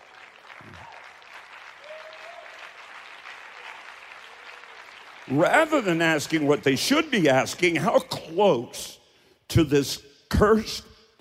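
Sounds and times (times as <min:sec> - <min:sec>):
audience clapping: 0:00.0 - 0:07.1
speech: 0:05.3 - 0:10.9.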